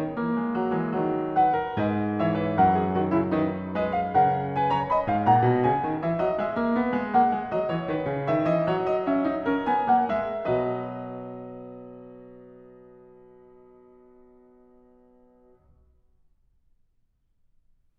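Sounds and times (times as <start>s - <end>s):
keyboard fugue in B major: 0.0s - 13.3s.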